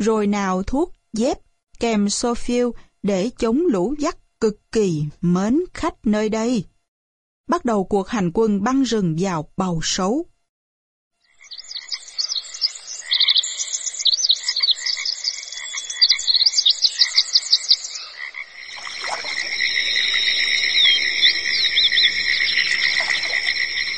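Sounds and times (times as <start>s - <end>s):
speech: 0.0s - 6.7s, 7.5s - 10.3s
birds chirping in the high tree canopy: 11.2s - 23.9s
cicadas buzzing in the forest: 11.2s - 23.9s.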